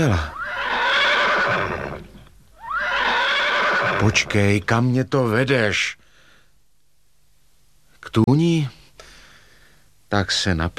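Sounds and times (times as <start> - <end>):
speech: 0.0 - 0.4, 1.5 - 2.2, 4.0 - 6.0, 8.0 - 8.8, 10.1 - 10.7
horse neighing: 0.0 - 4.3.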